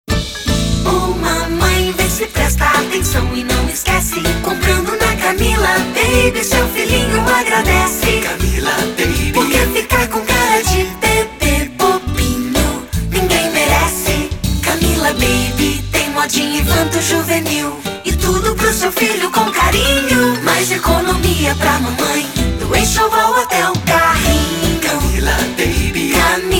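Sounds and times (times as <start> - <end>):
jingle: 0.1 - 23.1, 24.1 - 26.5.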